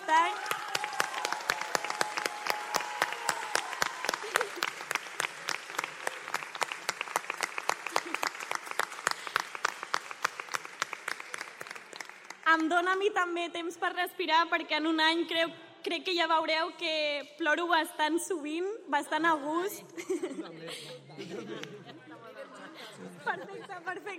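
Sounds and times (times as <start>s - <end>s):
audience applause: 0.0s - 12.4s
laughter: 4.2s - 4.9s, 20.0s - 24.1s
speech: 12.6s - 21.8s.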